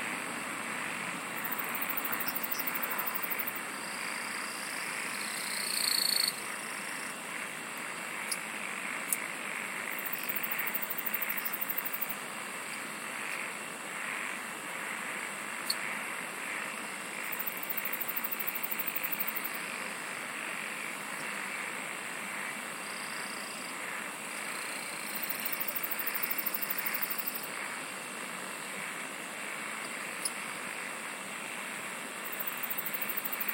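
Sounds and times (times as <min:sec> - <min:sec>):
insect trill: 0:00.1 - 0:33.5.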